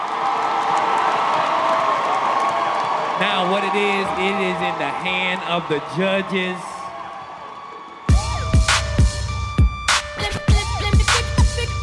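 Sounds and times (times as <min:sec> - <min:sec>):
crowd applause: 0:00.0 - 0:09.3
crowd cheering and whooping: 0:00.0 - 0:11.8
speech: 0:03.2 - 0:06.7.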